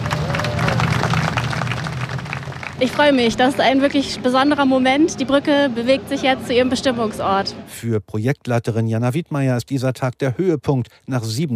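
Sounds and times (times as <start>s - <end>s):
hundreds of onlookers clapping as the Sternbrücke bridge is moved: 0.0s - 4.1s
speech: 2.8s - 11.5s.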